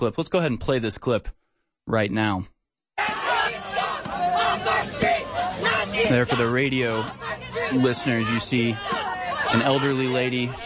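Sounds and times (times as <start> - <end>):
speech: 0.0 - 3.1, 6.0 - 10.6
crowd of protesters shouting and yelling angrily: 3.0 - 10.6.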